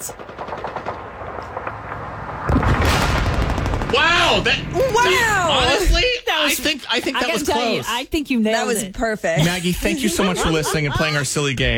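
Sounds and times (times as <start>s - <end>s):
World War II machine-gun fire sound effects: 0.0s - 5.5s
speech: 4.3s - 11.7s
laughter: 9.4s - 11.7s.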